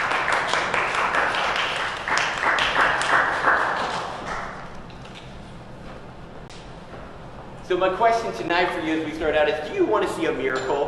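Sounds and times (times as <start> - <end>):
audience applause for the band: 0.0 - 4.5
speech: 7.7 - 10.8.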